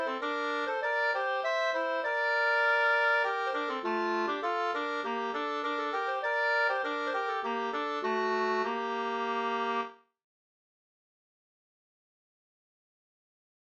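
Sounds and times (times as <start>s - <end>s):
two-part polska folk dance tune: 0.0s - 9.9s.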